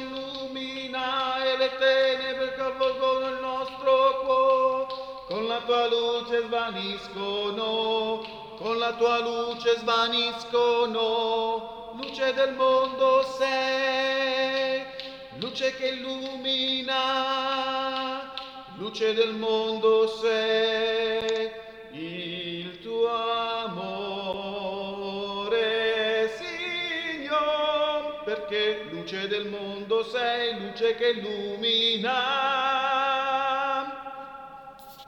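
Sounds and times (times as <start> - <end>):
tenor singing a chant: 0.0 - 35.0.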